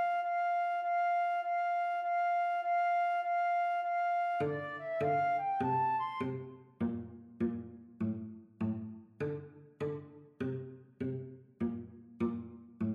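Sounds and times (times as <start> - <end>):
flute in a duet: 0.0 - 6.7
cello in a duet: 0.0 - 12.9.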